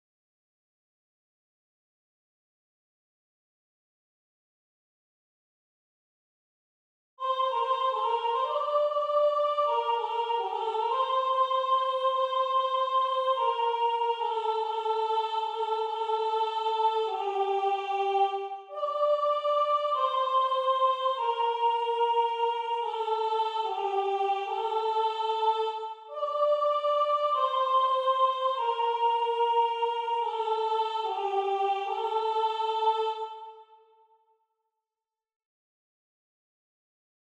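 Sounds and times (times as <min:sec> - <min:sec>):
soprano singing: 0:07.2 - 0:33.7.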